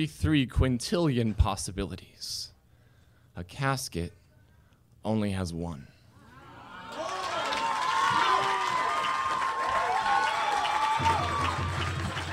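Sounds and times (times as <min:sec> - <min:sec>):
speech: 0:00.0 - 0:02.5, 0:03.4 - 0:04.2, 0:05.0 - 0:05.9
audience applause: 0:06.8 - 0:12.3.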